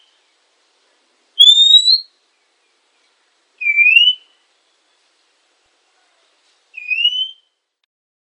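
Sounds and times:
female Oriental magpie-robin whistled notes: 1.4 - 2.1, 3.6 - 4.3, 6.8 - 7.5.

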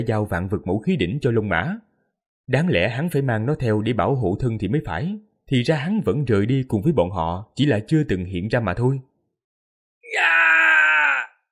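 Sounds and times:
speech: 0.0 - 1.9, 2.5 - 9.1
agonized scream: 10.0 - 11.5.

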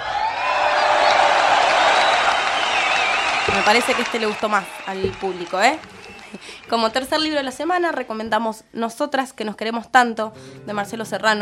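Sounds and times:
ovation applause effect: 0.0 - 8.0
speech: 3.6 - 11.4.

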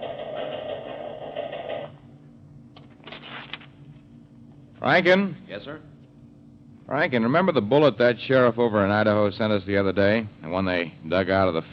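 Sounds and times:
teletype machine in the FBI's Butte, Montana office tapping out a message: 0.0 - 2.0
speech: 4.8 - 5.9, 6.9 - 11.7.

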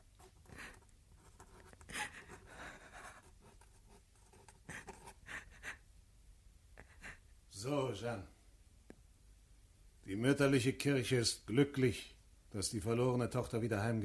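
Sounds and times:
pen scratching on paper marking a cross on a document: 0.2 - 5.2
speech: 7.6 - 8.4, 10.1 - 14.0.

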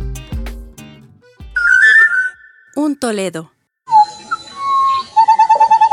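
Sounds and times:
Chico Piojo bird calling with whistled notes and chirps: 1.6 - 2.7, 3.9 - 5.9
speech: 2.8 - 3.6.

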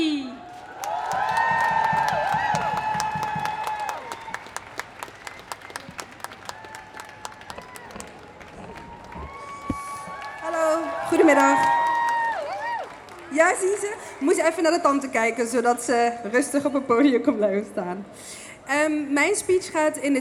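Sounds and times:
crowd applauding to welcome a speaker at a feminist march for International Women's Day: 0.4 - 15.2
speech: 13.5 - 20.1.

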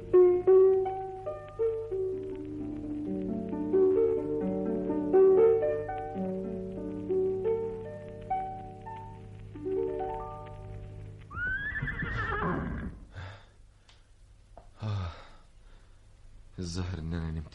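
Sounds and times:
soft melodic music: 0.0 - 11.4
horse whinnying: 11.3 - 13.1.

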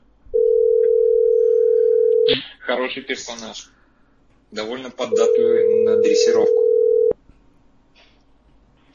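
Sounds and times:
telephone dial tone while a number is dialed: 0.4 - 2.3, 5.2 - 7.1
speech: 2.3 - 3.8, 4.5 - 6.6.

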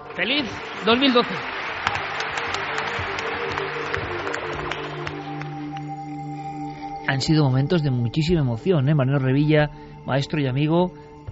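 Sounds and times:
applause: 0.0 - 6.4
speech: 0.2 - 1.6, 7.1 - 11.3.

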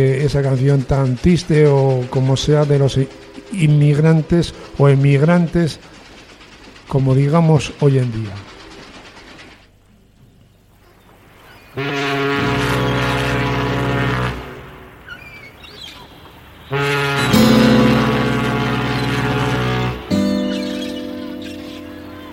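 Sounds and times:
speech: 0.0 - 6.0, 6.9 - 8.5
deep ship's horn from a vessel carrying immigrants: 11.7 - 15.5, 16.6 - 22.3.

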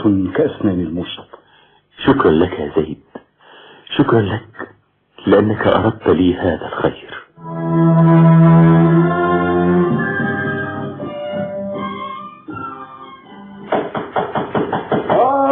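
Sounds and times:
speech: 0.0 - 1.4, 2.0 - 3.1, 3.9 - 7.0, 7.7 - 8.6
sustained tonal music-like sound: 7.4 - 14.0
sharp knocks on a door: 13.7 - 15.2.

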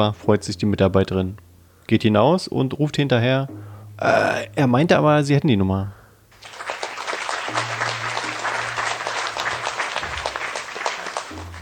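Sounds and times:
speech: 0.0 - 6.0
played applause sound effect: 6.4 - 11.5.

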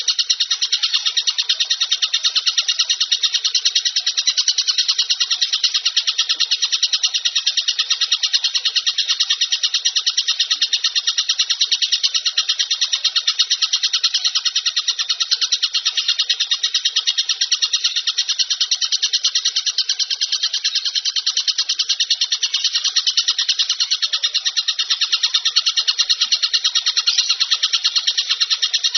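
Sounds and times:
bird singing a high rapid chatter: 0.0 - 28.9.

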